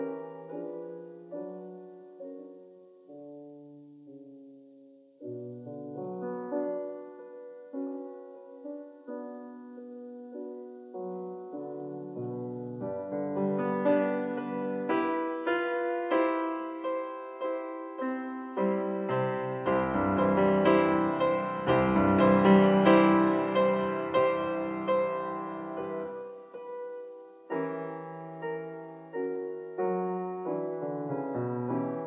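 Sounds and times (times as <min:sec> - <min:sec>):
prelude in B minor: 0:12.8 - 0:32.0.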